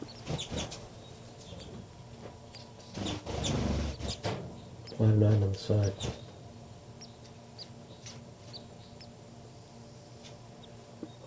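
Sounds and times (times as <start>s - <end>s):
baby birds chirping: 0.0s - 1.8s, 2.4s - 9.2s
low rumble: 0.0s - 11.2s
speech: 5.0s - 6.2s.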